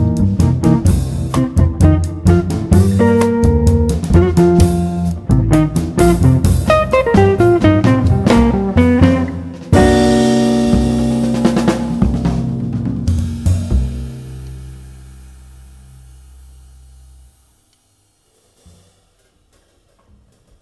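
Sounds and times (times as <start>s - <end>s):
guitar: 0.0s - 15.1s
bass guitar: 0.0s - 17.6s
drums: 0.0s - 20.6s.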